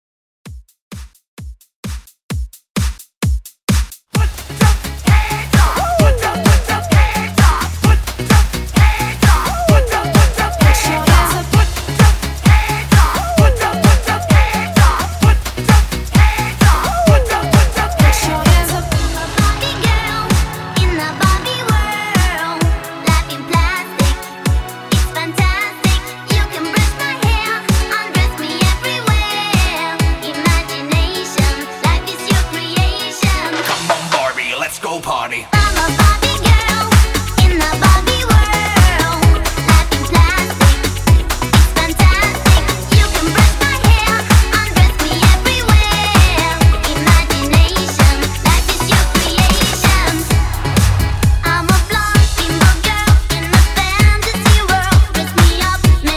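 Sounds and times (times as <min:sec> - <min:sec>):
90s hype music: 0:04.1 - 0:56.1.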